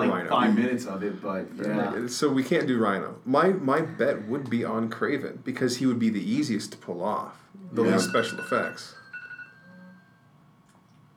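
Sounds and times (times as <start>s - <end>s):
speech: 0.3s - 9.0s
thin electronic tone: 7.6s - 10.4s
electronic timer going off: 7.9s - 10.2s.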